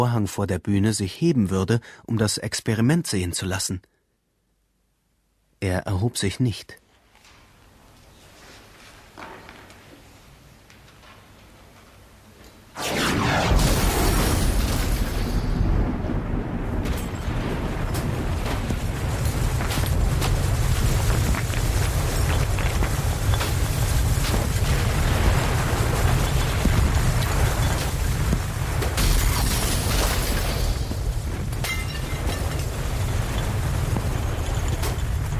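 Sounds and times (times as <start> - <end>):
speech: 0.0 - 4.0, 5.6 - 6.8
thunderclap booming through the house: 12.8 - 35.3.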